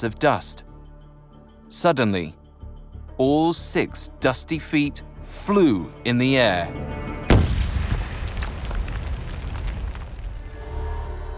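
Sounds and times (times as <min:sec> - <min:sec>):
speech: 0:00.0 - 0:00.7, 0:01.7 - 0:02.4, 0:03.2 - 0:07.2
explosion blast in a military combat setting: 0:07.3 - 0:10.8.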